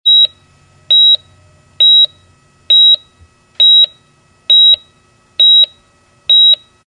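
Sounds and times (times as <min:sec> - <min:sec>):
piercing heart monitor alarm beeps: 0:00.1 - 0:01.2, 0:01.8 - 0:06.7.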